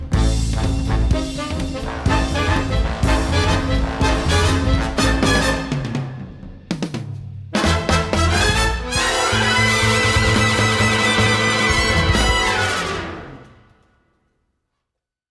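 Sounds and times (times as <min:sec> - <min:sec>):
music ending: 0:00.1 - 0:06.2, 0:07.6 - 0:13.6.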